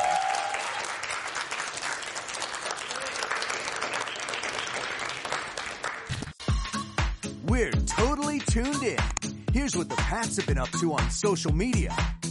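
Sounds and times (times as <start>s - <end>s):
audience applause: 0.0s - 6.3s
speech: 7.6s - 12.2s.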